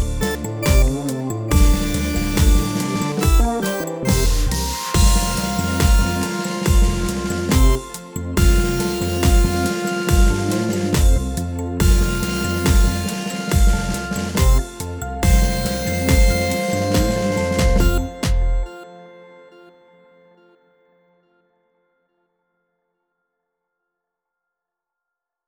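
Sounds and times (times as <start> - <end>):
funk music: 0.0 - 18.8.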